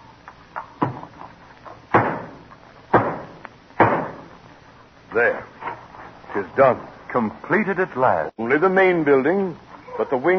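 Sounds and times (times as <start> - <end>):
hammer driving a nail: 1.9 - 4.2
speech: 5.2 - 5.6, 6.3 - 10.3.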